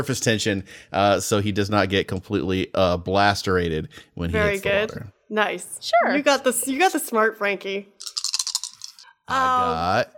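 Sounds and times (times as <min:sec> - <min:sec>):
speech: 0:00.0 - 0:08.0, 0:09.3 - 0:10.1
sustained wavering vocal tone: 0:04.2 - 0:05.1, 0:09.2 - 0:10.1
dice clattering across a hard surface: 0:08.0 - 0:09.0.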